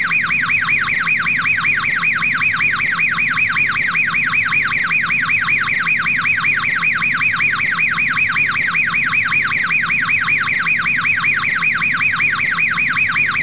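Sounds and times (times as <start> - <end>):
car alarm: 0.0 - 13.4.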